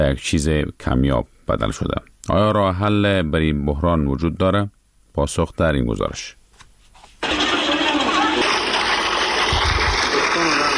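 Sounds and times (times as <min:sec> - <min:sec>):
speech: 0:00.0 - 0:06.4
water gushing from a pump: 0:07.2 - 0:10.7.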